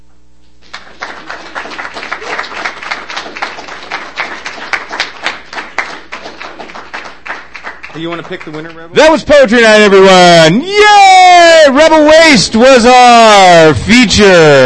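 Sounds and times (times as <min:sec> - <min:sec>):
audience applause at a poetry night: 0:00.6 - 0:09.2
speech: 0:08.0 - 0:14.6.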